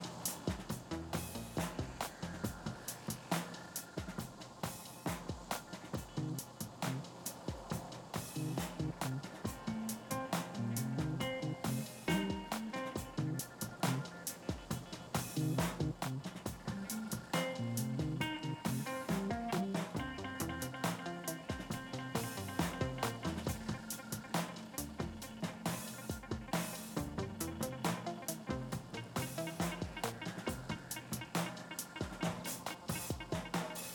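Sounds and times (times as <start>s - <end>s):
drums: 0.0s - 33.9s.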